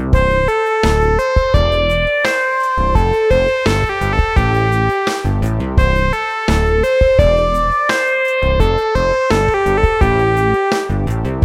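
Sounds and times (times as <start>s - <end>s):
simple triplet melodies in C major: 0.2s - 11.3s.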